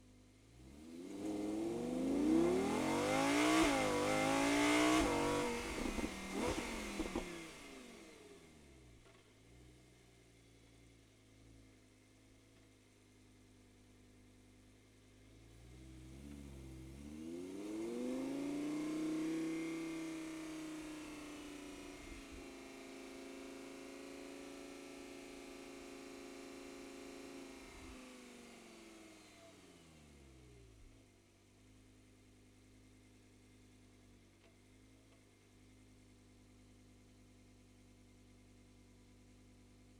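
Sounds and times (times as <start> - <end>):
Audi R8 engine onboard starting, driving fast, stopping and reversing: 0.6 - 9.2, 15.6 - 22.2.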